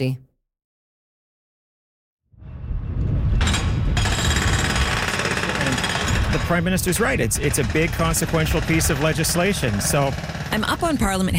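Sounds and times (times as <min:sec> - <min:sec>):
speech: 0:00.0 - 0:00.2, 0:06.3 - 0:11.3
jackhammer at a construction site: 0:03.4 - 0:11.3.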